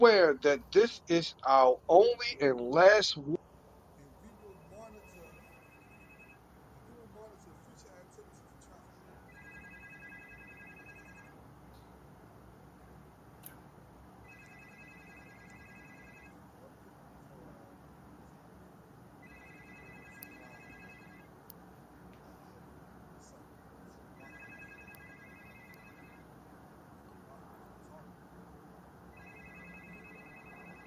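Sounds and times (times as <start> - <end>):
speech: 0.0 - 3.4
phone ringing: 4.2 - 6.4, 9.2 - 11.4, 14.2 - 16.4, 19.2 - 21.4, 24.2 - 26.3, 29.1 - 30.8.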